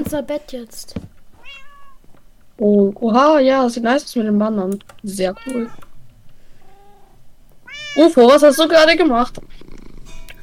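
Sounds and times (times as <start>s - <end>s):
speech: 0.1s - 1.6s, 2.6s - 5.8s, 8.0s - 9.7s
cat meowing: 1.4s - 2.0s, 5.2s - 5.9s, 6.6s - 8.2s.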